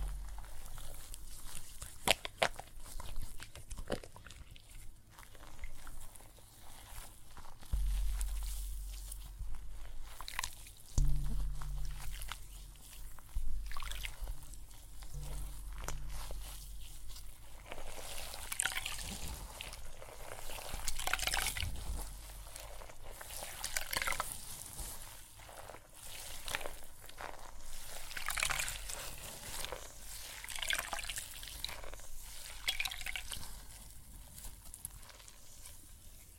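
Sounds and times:
low rumble: 0.0s - 0.9s, 7.8s - 10.4s, 11.0s - 18.1s
water and soap foam fizzing and crackling: 0.0s - 36.1s.

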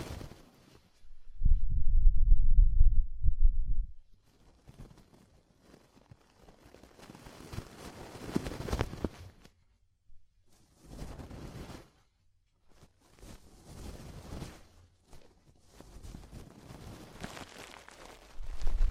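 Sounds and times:
scratchy rubbing and crackling of ear cleaning: 0.0s - 1.0s, 4.1s - 9.5s, 10.5s - 18.8s
low rumbling burst of ear cleaning: 1.1s - 4.0s.

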